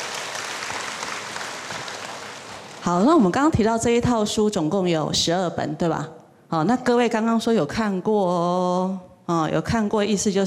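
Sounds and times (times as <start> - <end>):
warm audience applause at a talk presenting a Buddhist textbook series: 0.0 - 2.8
speech: 2.9 - 10.4.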